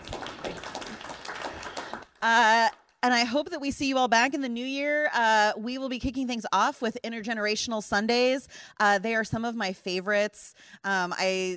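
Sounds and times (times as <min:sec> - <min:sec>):
faint scattered clapping from a small group during a church service: 0:00.0 - 0:03.0
speech: 0:02.2 - 0:11.5.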